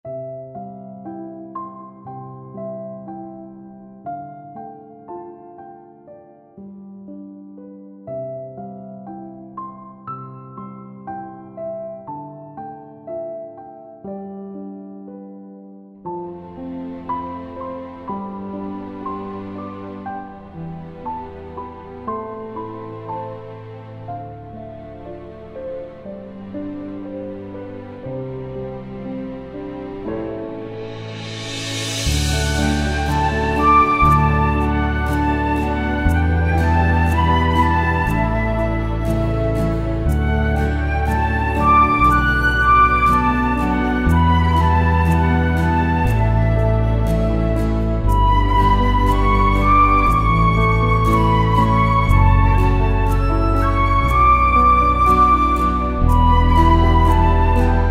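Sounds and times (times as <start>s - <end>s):
instrumental song: 0.0s - 57.8s.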